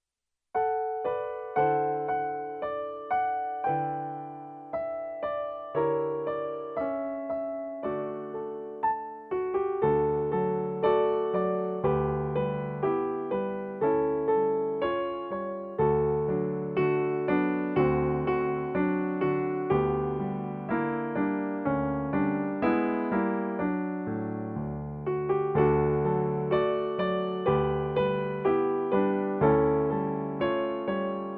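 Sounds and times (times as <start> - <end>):
piano: 0.5 - 31.3.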